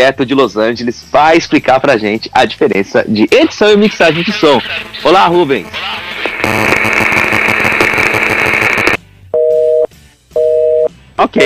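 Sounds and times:
speech: 0:00.0 - 0:07.1, 0:11.3 - 0:11.4
loud dense noise: 0:03.9 - 0:09.0
telephone busy tone after dropped call: 0:08.8 - 0:10.9.

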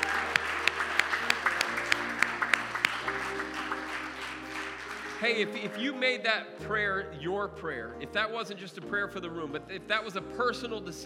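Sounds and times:
audience applause: 0:00.0 - 0:05.6
speech: 0:05.2 - 0:11.0.

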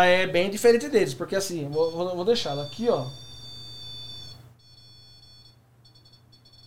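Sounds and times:
speech: 0:00.0 - 0:03.3
sensory ball device beeping: 0:01.7 - 0:06.6.

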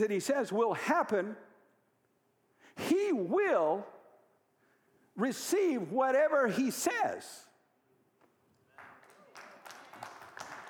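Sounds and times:
speech: 0:00.0 - 0:01.5, 0:02.8 - 0:04.0, 0:05.2 - 0:07.5
weak applause from audience: 0:08.7 - 0:10.6.

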